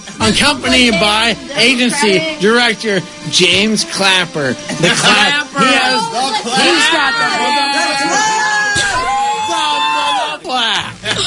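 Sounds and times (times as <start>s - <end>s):
speech: 0.2s - 8.4s
studio crew cheering and whooping: 6.7s - 10.4s.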